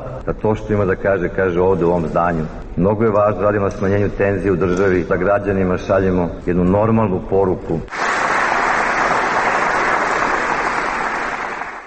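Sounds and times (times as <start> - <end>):
speech: 0.2 - 8.0
Serbian Progressive Party supporters clapping outside the Old Palace: 7.9 - 11.8.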